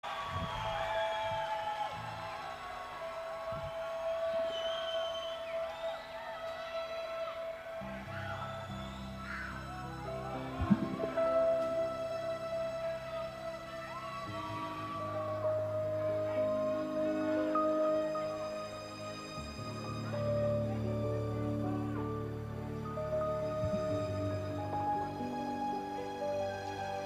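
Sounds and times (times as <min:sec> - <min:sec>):
piano intro: 0:00.0 - 0:27.0.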